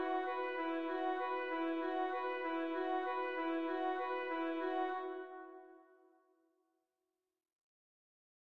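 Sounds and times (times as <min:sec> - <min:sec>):
woodwinds playing: 0:00.0 - 0:05.9.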